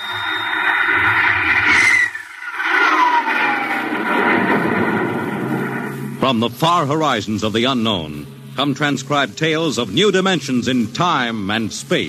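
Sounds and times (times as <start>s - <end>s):
gliding tones sweeping downward in pitch: 0.0s - 6.6s
science-fiction rocket blastoff effect with roaring rumble: 0.0s - 6.8s
speech: 6.3s - 12.0s.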